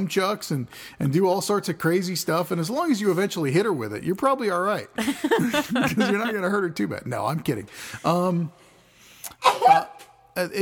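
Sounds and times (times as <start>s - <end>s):
speech: 0.0s - 8.6s, 9.3s - 10.6s
laughter: 5.0s - 6.8s
sneeze: 9.4s - 10.1s.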